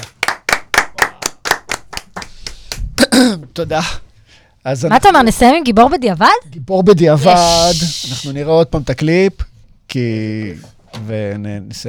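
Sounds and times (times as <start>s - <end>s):
audience clapping in rhythm: 0.0s - 3.1s
speech: 3.2s - 4.0s, 4.6s - 11.8s.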